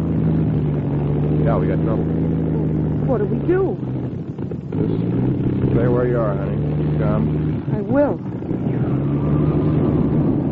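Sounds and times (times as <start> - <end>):
light aircraft engine droning in flight over the desert: 0.0 - 10.5
speech: 1.5 - 2.4, 3.1 - 4.0, 4.7 - 10.3.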